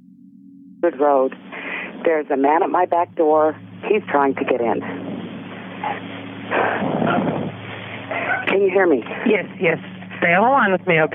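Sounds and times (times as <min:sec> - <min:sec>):
speech: 0:00.8 - 0:05.0, 0:05.8 - 0:07.4, 0:08.5 - 0:11.1
dog barking: 0:08.1 - 0:08.5.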